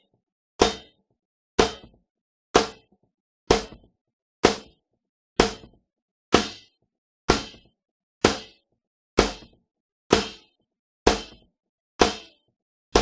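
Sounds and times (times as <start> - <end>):
snare drum: 0.6 - 0.9, 1.6 - 1.9, 2.6 - 2.8, 3.5 - 3.8, 4.4 - 4.7, 5.4 - 5.8, 6.4 - 6.6, 7.3 - 7.6, 8.2 - 8.5, 9.2 - 9.5, 10.1 - 10.5, 11.1 - 11.4, 12.0 - 12.3.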